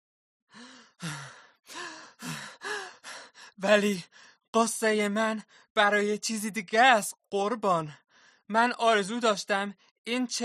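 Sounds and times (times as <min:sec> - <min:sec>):
heavy panting after a run: 0:00.6 - 0:04.3
speech: 0:03.6 - 0:10.4.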